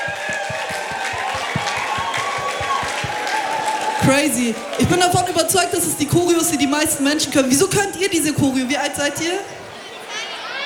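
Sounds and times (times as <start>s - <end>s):
steady rhythmic thump: 0.0s - 4.0s
crowd applauding and cheering: 0.0s - 7.5s
speech: 4.0s - 9.6s.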